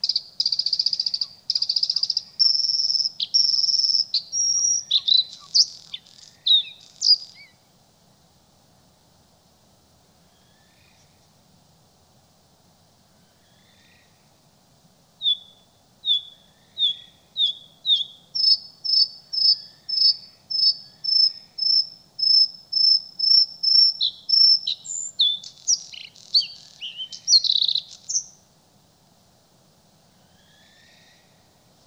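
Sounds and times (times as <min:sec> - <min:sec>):
bluethroat bird: 0:00.0 - 0:07.5, 0:16.1 - 0:28.4.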